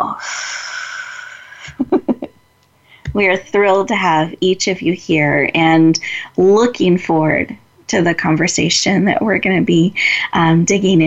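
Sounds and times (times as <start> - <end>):
long steady calming group breath: 0.2 - 1.7, 10.0 - 10.3
speech: 3.2 - 11.0.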